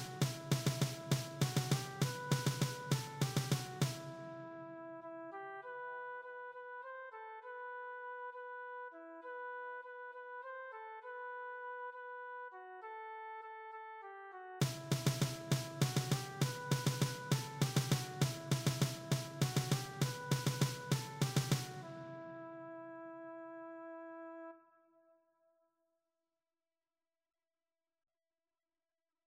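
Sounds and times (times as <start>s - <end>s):
percussion: 0.0s - 4.3s, 14.6s - 22.1s.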